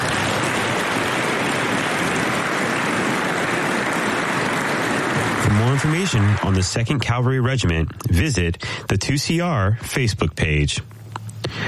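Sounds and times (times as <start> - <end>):
round of applause: 0.0 - 7.4
speech: 5.7 - 11.6.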